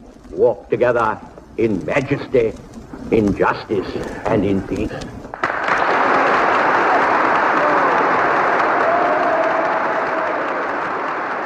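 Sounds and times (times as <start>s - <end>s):
speech: 0.4s - 5.2s
Congress audience applauding: 5.3s - 11.4s
roar of cheering voices: 6.2s - 11.1s.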